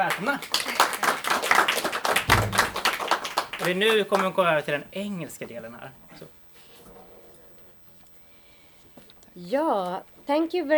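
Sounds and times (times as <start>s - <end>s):
speech: 0.0s - 0.7s, 3.6s - 6.4s, 9.4s - 10.7s
warm applause for the day's authors: 0.0s - 4.6s.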